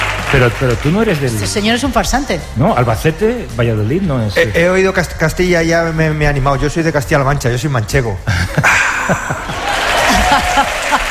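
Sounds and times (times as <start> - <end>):
audience applause: 0.0 - 1.6, 9.0 - 11.0
speech: 0.3 - 9.8
laughter: 8.3 - 11.0.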